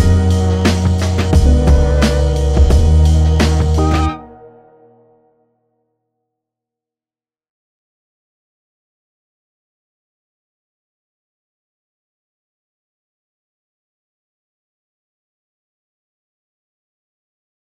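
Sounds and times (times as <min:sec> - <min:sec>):
nineties beat: 0:00.0 - 0:04.4.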